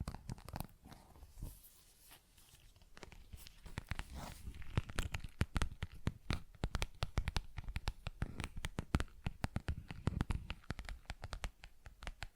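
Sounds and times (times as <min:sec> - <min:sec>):
quick taps and scratchy strokes: 0:02.8 - 0:12.3.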